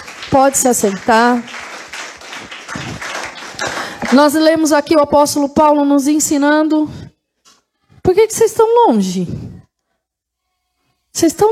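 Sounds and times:
crowd applause: 0.0 - 4.4
speech: 0.3 - 1.6, 4.1 - 7.1, 8.0 - 9.4, 11.2 - 11.5.

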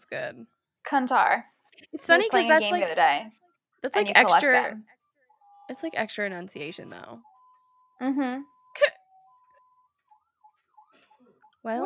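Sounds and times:
speech: 0.0 - 5.0, 5.7 - 7.3, 8.0 - 9.0, 11.6 - 11.8
ambulance toy siren: 7.0 - 11.8.

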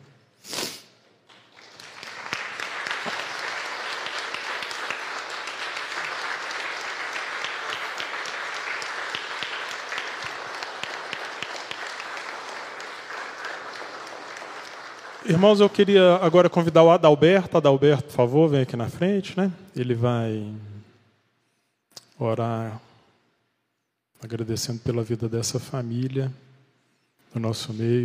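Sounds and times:
audience applause: 1.3 - 16.5
speech: 15.3 - 20.7, 22.2 - 22.9, 24.2 - 26.5, 27.3 - 28.0.

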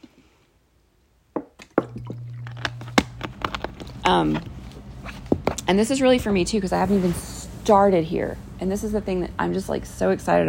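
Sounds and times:
sipping water: 1.8 - 3.4
low hum: 1.8 - 9.3
speech: 4.1 - 4.5, 5.7 - 10.4.

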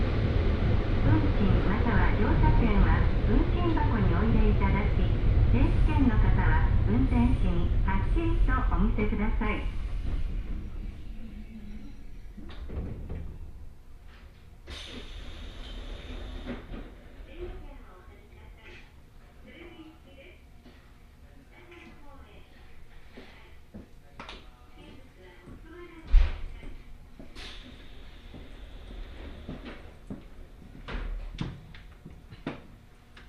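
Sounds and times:
Hokuriku Railway Ishikawa Line train rumble: 0.0 - 33.2
brief hisses: 14.7 - 16.6, 27.4 - 28.0.

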